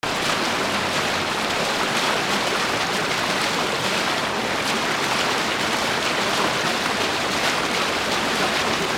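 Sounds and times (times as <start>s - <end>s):
water: 0.0s - 8.9s.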